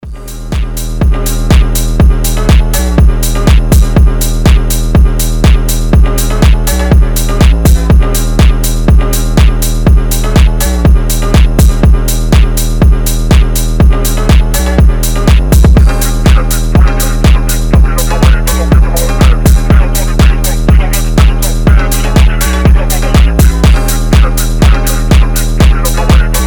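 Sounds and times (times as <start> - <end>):
phonk house music: 0.0 - 26.4.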